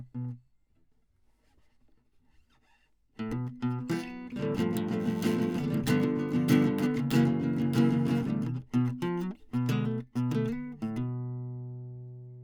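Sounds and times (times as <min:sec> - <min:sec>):
classical guitar: 0:00.0 - 0:00.4, 0:03.2 - 0:12.4.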